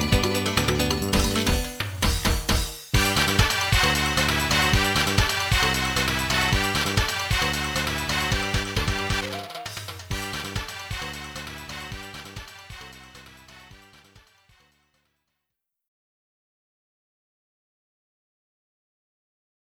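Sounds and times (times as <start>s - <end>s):
samba music: 0.0s - 14.7s.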